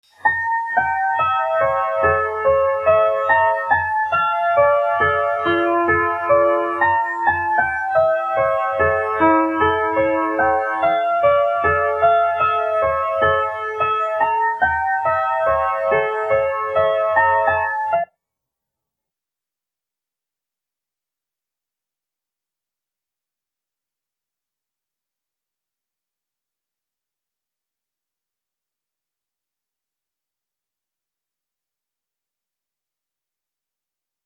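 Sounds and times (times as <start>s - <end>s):
piano: 0.0s - 18.2s.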